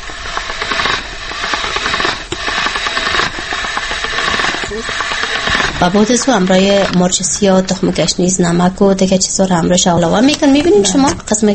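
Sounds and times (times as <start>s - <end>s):
meat grinder mincing meat: 0.0s - 8.8s
speech: 5.8s - 11.5s.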